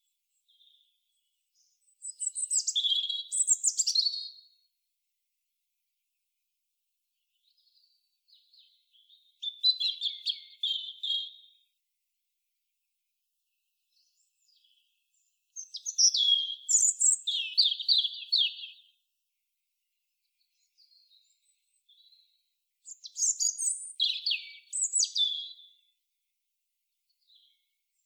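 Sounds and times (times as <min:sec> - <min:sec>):
European robin singing: 0:00.4 - 0:04.5, 0:07.3 - 0:11.6, 0:13.9 - 0:19.0, 0:20.4 - 0:25.9.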